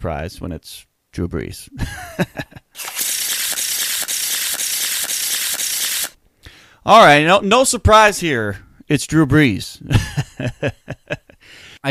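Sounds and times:
speech: 0.0 - 2.9, 6.8 - 11.2
laughter: 1.8 - 2.6, 9.9 - 11.4
deck of cards being shuffled: 2.8 - 6.2.

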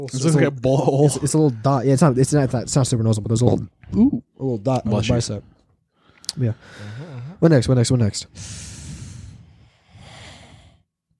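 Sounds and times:
speech: 0.0 - 5.6, 6.4 - 8.8
person snoring: 8.4 - 10.9.

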